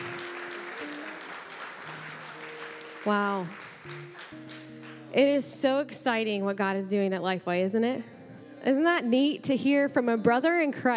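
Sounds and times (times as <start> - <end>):
audience applause: 0.0 - 5.1
speech: 3.0 - 10.9.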